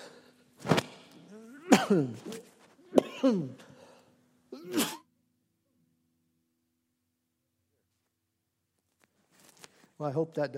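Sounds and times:
person coughing into a microphone: 1.3 - 3.7, 4.5 - 5.1
speech: 1.9 - 2.4, 3.2 - 3.6, 10.0 - 10.5.

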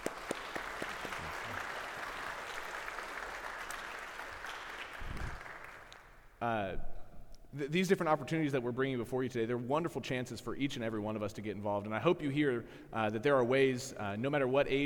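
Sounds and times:
audience applause: 0.0 - 6.1
speech: 7.6 - 14.8.

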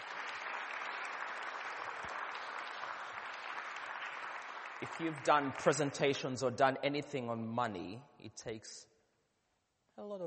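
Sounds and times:
audience clapping: 0.0 - 6.6
speech: 4.8 - 8.9, 10.0 - 10.2.

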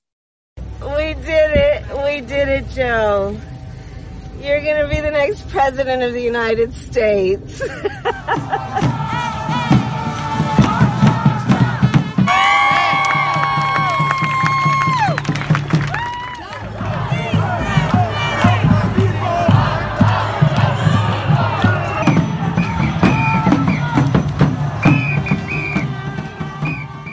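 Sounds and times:
speech: 0.8 - 3.5, 4.4 - 9.4
laughter: 7.5 - 9.9
street crowd cheering in Los Angeles: 8.2 - 27.1
car horns honking in Los Angeles: 8.7 - 12.4, 16.8 - 27.1.

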